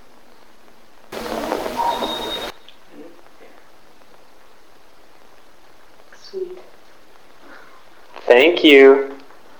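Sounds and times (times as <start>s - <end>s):
piano: 1.1s - 2.5s.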